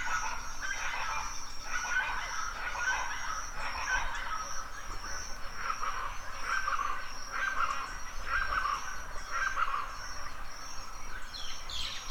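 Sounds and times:
chachalacas loud call at dawn in a forest in Mexico: 0.0 - 12.0.

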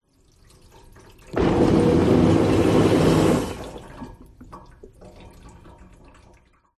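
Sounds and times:
water draining: 0.3 - 6.7
household under-sink water pump running: 1.3 - 4.2.

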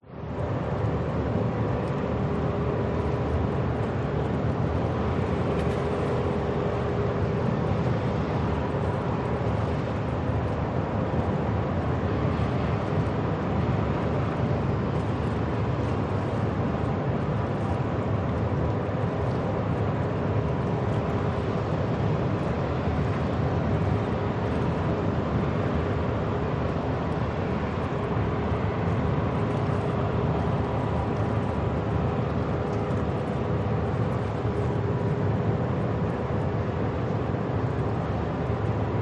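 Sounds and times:
harbour ambience: 0.1 - 39.0.

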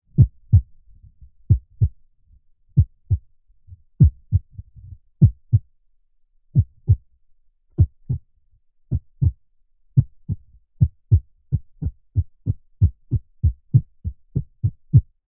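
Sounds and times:
irregular heartbeat heard through chest: 0.1 - 2.0, 2.8 - 5.7, 6.6 - 7.1, 7.8 - 8.3, 8.9 - 9.4, 10.0 - 15.2.

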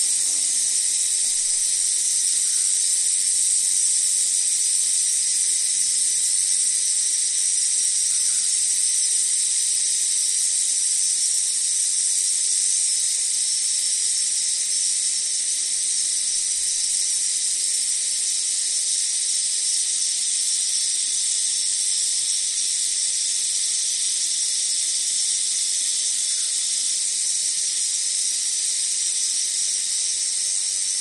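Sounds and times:
flies buzzing in a glasshouse: 0.0 - 2.5
wind in trees in summer: 0.0 - 6.5
cicadas in summer: 0.0 - 30.9
crickets chirping in summer: 0.0 - 30.9
rural summer insects buzzing in a glasshouse: 0.0 - 30.9.

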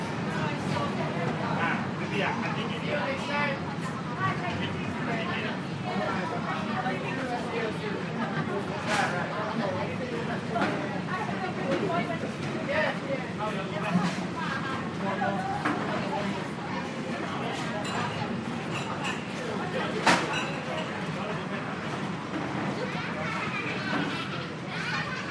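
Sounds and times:
busy restaurant walla of people and families in Singapore: 0.0 - 25.2.

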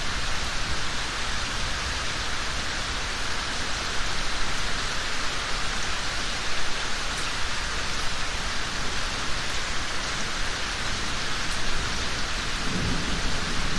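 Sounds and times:
rain in a yard: 0.0 - 13.7
thunder: 12.6 - 13.7.

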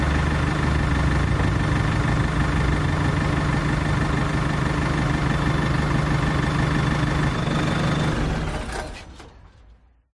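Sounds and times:
bulldozer engine starting: 0.0 - 10.0
bulldozer loading debris into a truck: 8.2 - 10.0.

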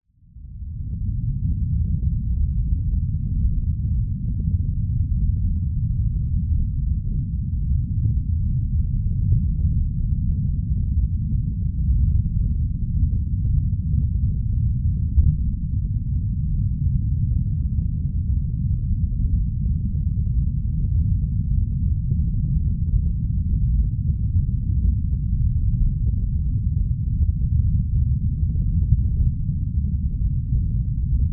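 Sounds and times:
deep underwater nature ambience: 0.2 - 31.3.

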